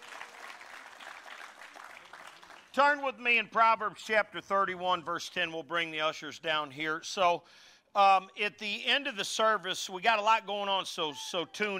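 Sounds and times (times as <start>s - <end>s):
audience applauding: 0.0s - 2.8s
speech: 2.8s - 11.7s.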